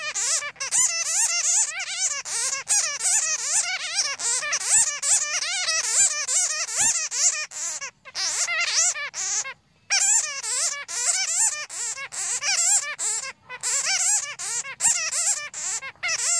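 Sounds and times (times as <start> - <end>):
bat squeaking: 0.0 - 16.3.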